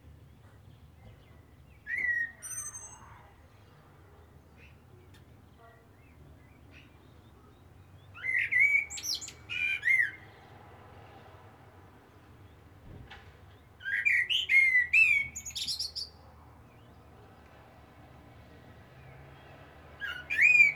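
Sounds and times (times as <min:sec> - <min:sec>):
common blackbird song fluty whistles: 0:01.8 - 0:03.1, 0:08.2 - 0:10.2, 0:13.8 - 0:16.1, 0:20.0 - 0:20.7.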